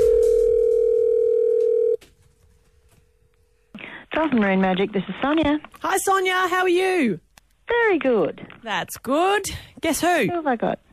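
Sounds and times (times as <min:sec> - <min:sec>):
telephone dial tone while calling: 0:00.0 - 0:02.0
speech: 0:04.2 - 0:10.8.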